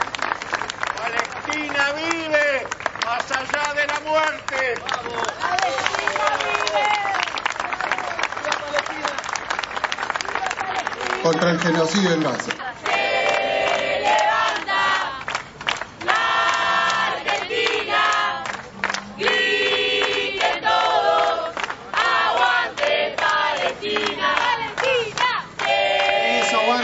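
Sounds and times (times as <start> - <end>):
applause: 0.0 - 26.8
large crowd cheering and shouting: 5.0 - 8.2, 26.0 - 26.8
speech: 11.3 - 12.6.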